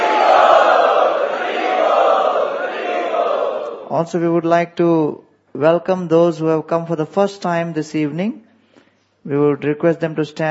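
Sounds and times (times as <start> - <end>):
audience at an evening preaching-mission gathering chanting loudly: 0.0 - 3.9
speech: 3.9 - 8.4, 9.2 - 10.4.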